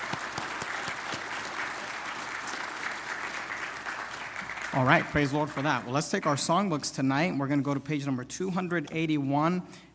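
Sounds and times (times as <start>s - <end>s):
audience applause: 0.0s - 5.8s
speech: 4.7s - 9.9s.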